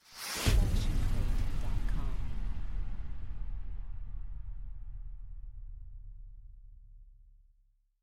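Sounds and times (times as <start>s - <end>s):
cinematic hit: 0.4s - 6.2s.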